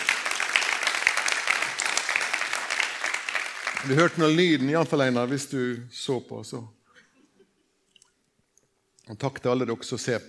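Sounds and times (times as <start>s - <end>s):
audience applauding: 0.0s - 5.0s
speech: 3.8s - 6.8s, 9.1s - 10.2s.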